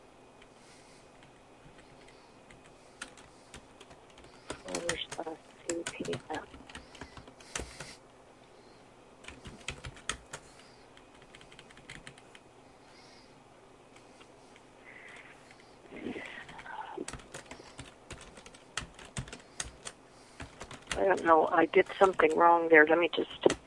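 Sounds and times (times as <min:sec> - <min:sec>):
typing on a computer keyboard: 0:01.2 - 0:07.9, 0:09.2 - 0:12.4, 0:16.5 - 0:22.4, 0:23.4 - 0:23.6
speech: 0:21.1 - 0:23.4.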